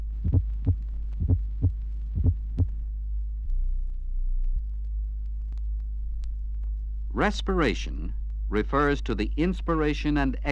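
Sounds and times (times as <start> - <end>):
apical pulse heartbeat heard through a stethoscope under the left breast: 0.0 - 2.8
low steady hum: 0.0 - 10.5
speech: 7.2 - 10.5.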